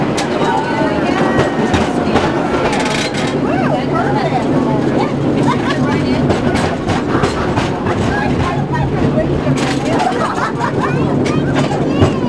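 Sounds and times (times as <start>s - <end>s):
laughter: 0.0s - 12.2s
tram: 0.0s - 12.2s.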